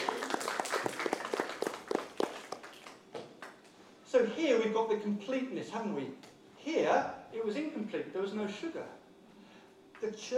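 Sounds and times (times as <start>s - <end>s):
audience applause: 0.0s - 3.7s
speech: 4.2s - 9.0s, 10.0s - 10.3s.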